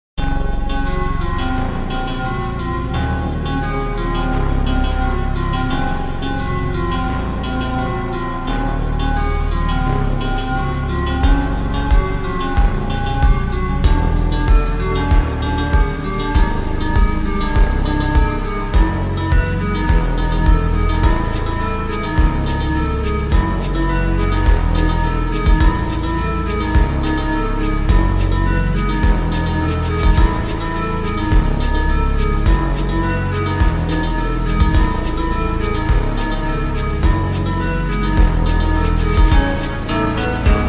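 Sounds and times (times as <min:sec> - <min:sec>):
super slowed music with reverb: 0:00.2 - 0:40.6.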